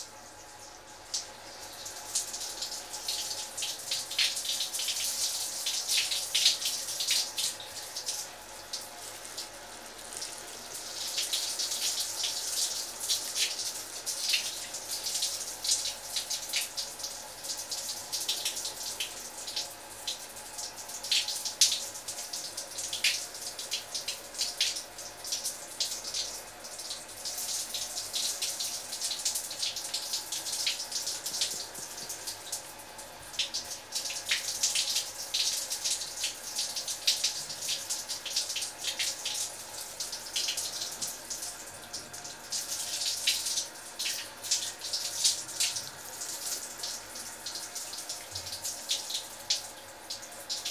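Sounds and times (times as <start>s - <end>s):
water rinsing out shampoo: 1.2s - 20.5s, 21.3s - 50.6s.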